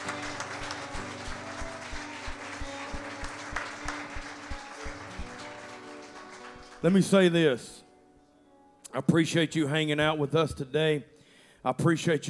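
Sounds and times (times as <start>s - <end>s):
audience hand clap of praise: 0.0s - 7.3s
speech: 6.8s - 7.8s, 9.0s - 12.2s.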